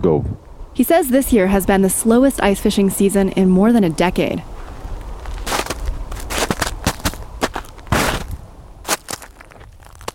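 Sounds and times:
speech: 0:00.0 - 0:04.5
man's footsteps on snow-covered frozen Lake Mendota in Madison: 0:04.6 - 0:10.1.

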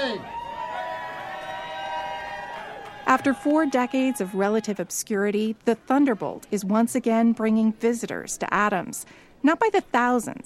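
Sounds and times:
people whooping: 0:00.0 - 0:04.9
crowd cheering at a winter race medal ceremony: 0:00.0 - 0:05.0
speech: 0:00.1 - 0:00.4, 0:03.1 - 0:10.4.

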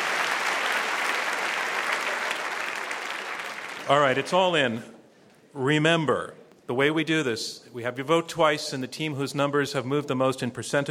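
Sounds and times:
round of applause: 0:00.0 - 0:04.4
speech: 0:03.9 - 0:04.9, 0:05.5 - 0:10.8.

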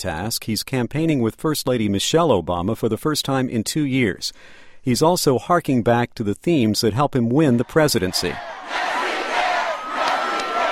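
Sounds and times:
speech: 0:00.0 - 0:09.0
crowd of more than 30,000 cheering at a presidential rally on Ohio State University campus: 0:07.5 - 0:10.7.

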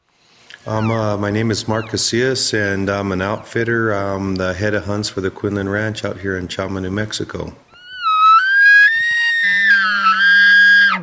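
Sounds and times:
speech: 0:00.6 - 0:07.7
hunter imitating elk calls: 0:07.8 - 0:11.0.

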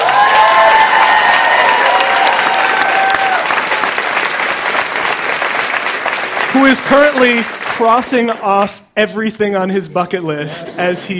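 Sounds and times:
audience applause: 0:00.0 - 0:08.4
speech: 0:06.9 - 0:11.1.

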